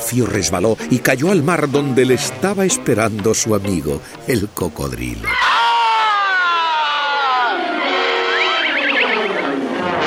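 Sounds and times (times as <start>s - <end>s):
speech: 0.1s - 5.6s
children cheering: 5.2s - 9.9s.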